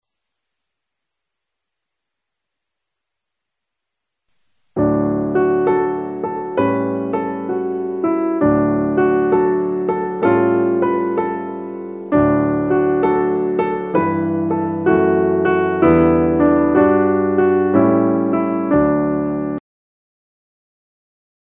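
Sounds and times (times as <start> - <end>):
piano: 4.4 - 19.6.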